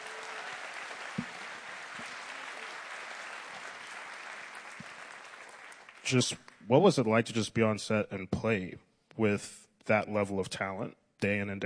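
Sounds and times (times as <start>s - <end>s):
audience applause: 0.0s - 6.4s
speech: 6.1s - 11.6s.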